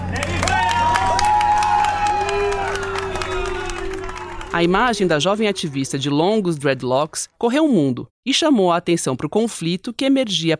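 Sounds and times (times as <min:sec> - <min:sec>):
crowd applauding: 0:00.0 - 0:06.4
speech: 0:04.6 - 0:10.5.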